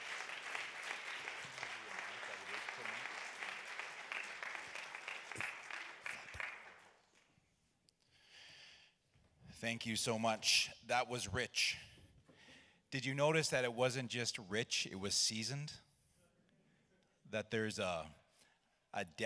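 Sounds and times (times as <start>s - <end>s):
audience applause: 0.0s - 7.0s
speech: 9.6s - 11.9s, 12.9s - 15.9s, 17.3s - 18.2s, 18.9s - 19.2s.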